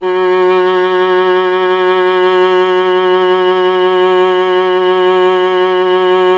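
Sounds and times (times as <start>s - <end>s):
viola playing F: 0.0s - 6.3s.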